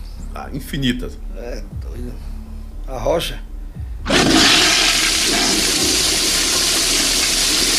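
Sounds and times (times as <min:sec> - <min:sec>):
speech: 0:00.4 - 0:02.3, 0:02.9 - 0:03.5
toilet flushing: 0:04.1 - 0:07.7.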